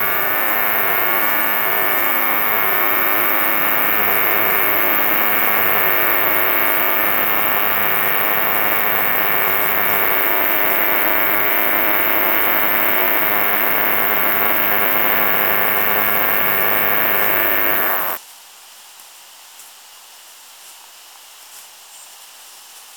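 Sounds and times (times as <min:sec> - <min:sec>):
New Forest cicada continuous high buzzing song: 0:00.0 - 0:18.2.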